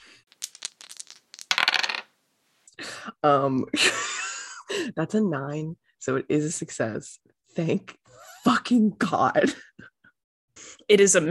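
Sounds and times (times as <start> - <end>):
dice rolled in a tabletop role-playing game: 0.0 - 2.1
speech: 2.8 - 4.0, 4.8 - 8.0, 8.7 - 9.6, 10.9 - 11.2.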